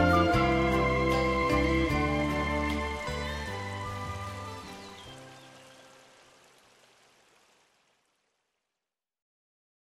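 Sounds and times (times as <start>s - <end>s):
soft nature music: 0.0s - 6.4s.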